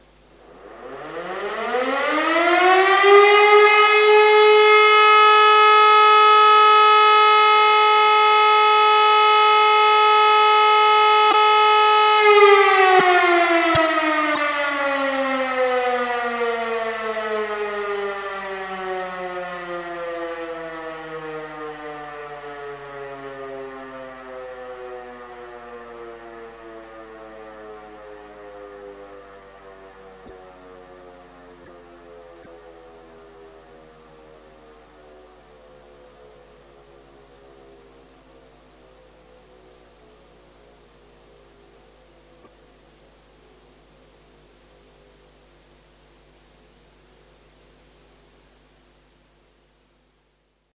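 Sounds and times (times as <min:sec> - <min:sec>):
test alarm siren signals: 0:00.4 - 0:37.3.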